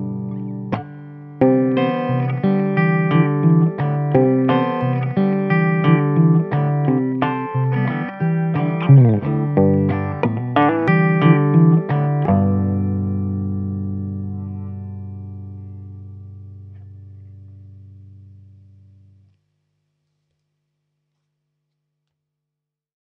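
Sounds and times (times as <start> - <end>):
crazy country music: 0.0 - 16.3.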